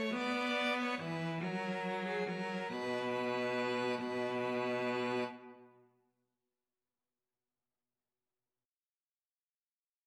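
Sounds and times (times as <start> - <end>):
violin and cello duet: 0.0 - 5.6.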